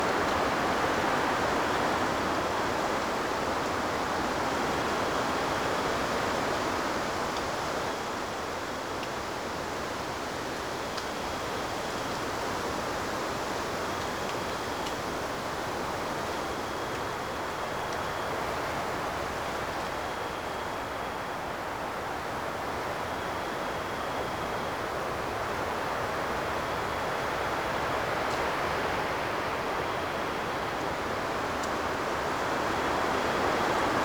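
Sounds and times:
forest exterior breeze ambience: 0.0 - 34.0.

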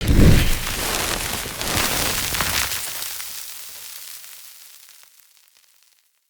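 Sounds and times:
siege rope igniting: 0.0 - 2.8.

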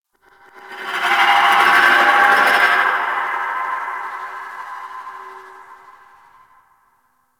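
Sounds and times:
ambience: 0.1 - 7.2.

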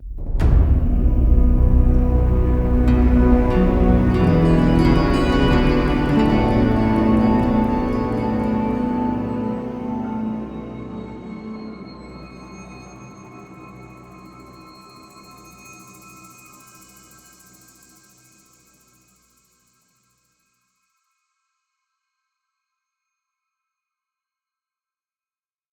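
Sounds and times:
cave music cue: 0.4 - 13.1.

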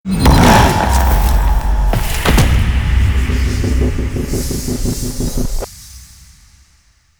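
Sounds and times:
mech being destroyed: 0.1 - 4.9.

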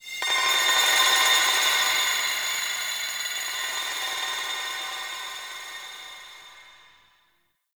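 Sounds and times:
glassy ambient texture: 0.2 - 7.2.

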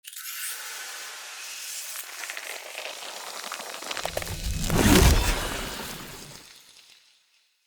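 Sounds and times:
spear pulled from tree: 3.8 - 6.4.

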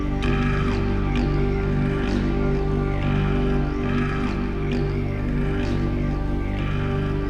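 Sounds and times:
music cue loop: 0.0 - 7.2.

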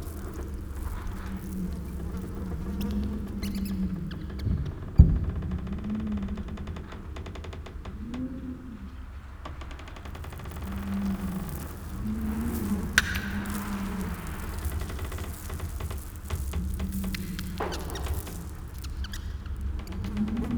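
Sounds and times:
interior background ambience: 0.0 - 20.5.

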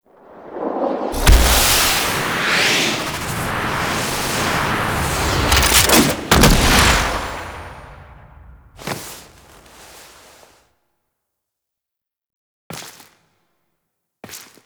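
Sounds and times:
Archwing flying in: 0.1 - 9.0.

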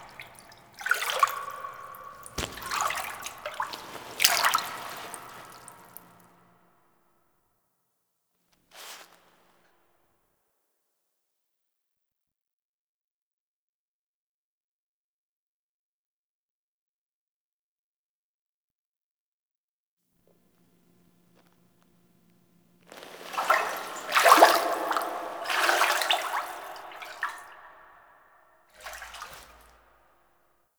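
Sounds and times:
foley sounds: 0.0 - 6.2, 22.9 - 28.1.

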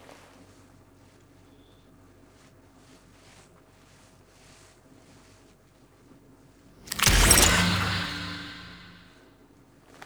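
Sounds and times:
blade against a throat: 6.9 - 9.1.

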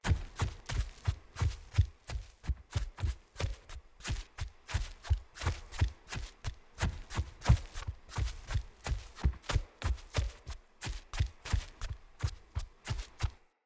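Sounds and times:
wolf footsteps jogging: 0.0 - 13.4.

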